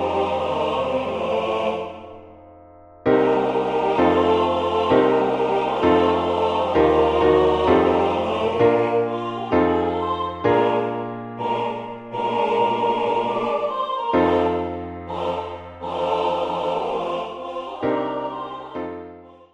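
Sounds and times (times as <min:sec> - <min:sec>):
MIDI SATB four-part choir: 0:00.0 - 0:19.5.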